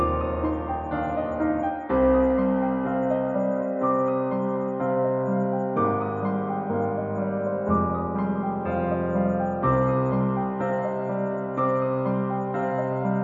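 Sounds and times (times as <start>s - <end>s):
piano: 0.0s - 13.2s.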